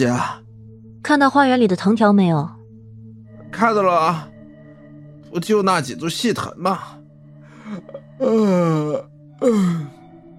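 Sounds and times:
speech: 0:00.0 - 0:00.4, 0:01.0 - 0:02.6, 0:03.5 - 0:04.3, 0:05.3 - 0:07.0, 0:07.7 - 0:10.0
person yawning: 0:07.6 - 0:10.0.

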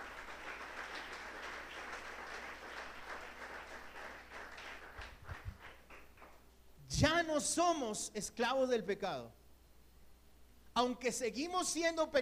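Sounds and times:
audience applauding: 0:00.0 - 0:06.4
speech: 0:07.0 - 0:09.4, 0:10.8 - 0:12.2.

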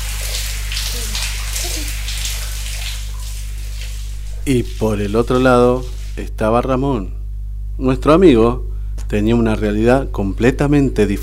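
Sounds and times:
shower water running: 0:00.0 - 0:06.3
low constant hum: 0:00.0 - 0:11.2
speech: 0:04.5 - 0:07.2, 0:07.8 - 0:11.2.

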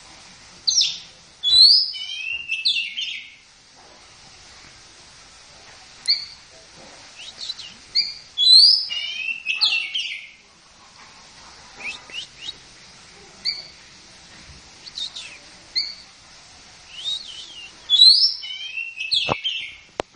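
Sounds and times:
long-tailed shrike song: 0:00.7 - 0:03.4, 0:07.2 - 0:10.4, 0:11.8 - 0:12.6, 0:14.8 - 0:16.1, 0:16.9 - 0:19.9.

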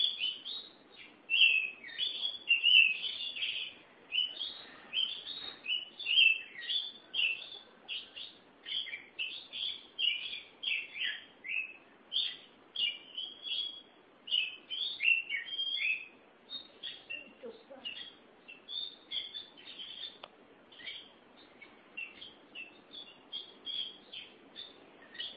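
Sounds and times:
Oriental magpie-robin song: 0:00.0 - 0:25.3
background hiss: 0:00.0 - 0:25.3.

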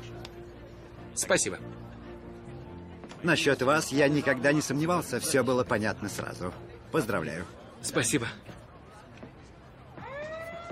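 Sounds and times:
murmur: 0:00.0 - 0:10.7
speech: 0:01.2 - 0:02.0, 0:03.2 - 0:08.6
ambulance siren on the street: 0:10.0 - 0:10.7.

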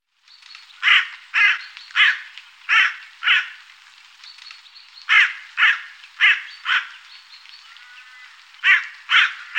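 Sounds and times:
carrion crow giving harsh grating caws in Germany, Austria or Switzerland: 0:00.8 - 0:03.6, 0:05.1 - 0:07.0, 0:07.7 - 0:09.5.

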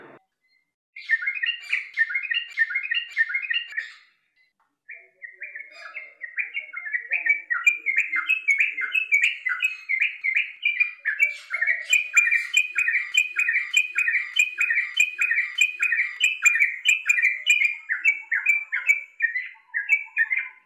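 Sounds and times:
bird chirping: 0:00.0 - 0:20.6.

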